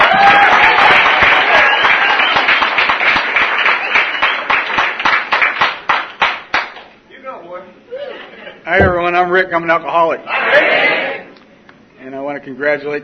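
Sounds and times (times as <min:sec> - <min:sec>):
crowd applause welcoming the main speaker at an evening meeting: 0:00.0 - 0:06.8
speech: 0:09.2 - 0:11.0, 0:12.4 - 0:13.0.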